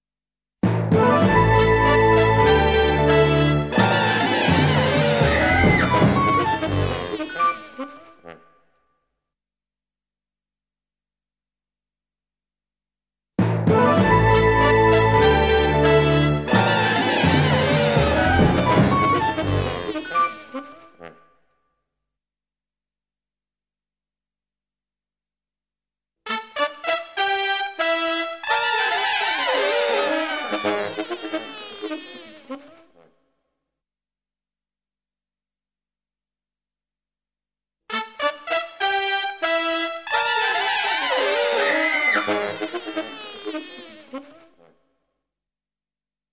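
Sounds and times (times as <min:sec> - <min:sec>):
fanfare: 0:00.9 - 0:07.8, 0:13.7 - 0:20.6, 0:26.3 - 0:32.6, 0:37.9 - 0:44.2.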